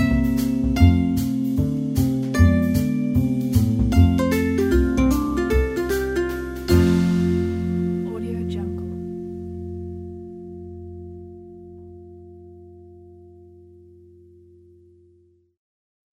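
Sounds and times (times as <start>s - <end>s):
chill jazz Christmas tune: 0.0s - 10.6s.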